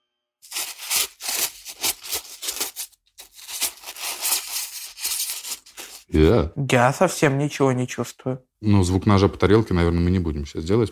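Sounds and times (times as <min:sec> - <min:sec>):
styrofoam being rubbed: 0:00.4 - 0:06.1
speech: 0:06.1 - 0:10.9.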